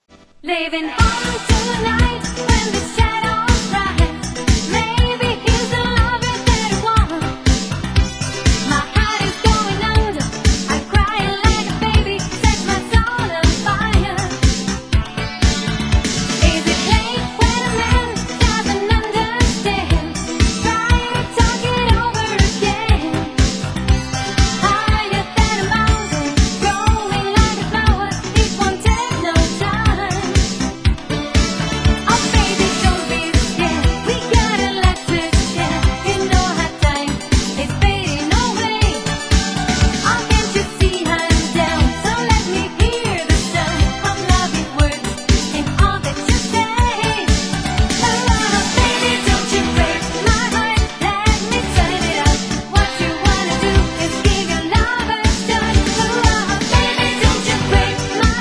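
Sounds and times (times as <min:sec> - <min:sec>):
disco music: 0:00.0 - 0:58.3.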